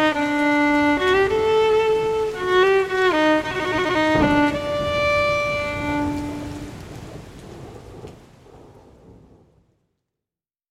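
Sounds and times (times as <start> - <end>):
Azerbaijani violin playing unaccompanied: 0.0 - 6.9.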